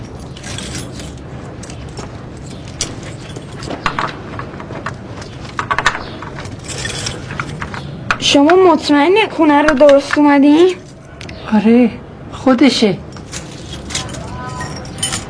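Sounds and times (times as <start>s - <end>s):
large bunch of house keys jangling: 0.0s - 7.9s, 13.1s - 15.2s
steady noisy background: 0.0s - 15.2s
speech: 8.3s - 10.8s, 11.5s - 13.0s.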